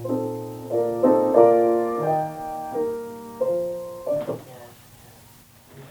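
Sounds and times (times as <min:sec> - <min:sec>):
legato melody: 0:00.0 - 0:04.5.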